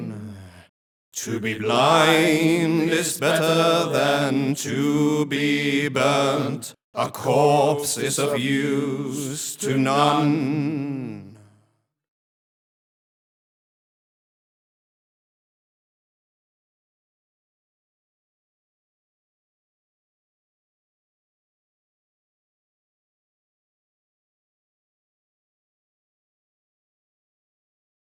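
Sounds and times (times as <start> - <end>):
vocal chorus: 0.0 - 11.7.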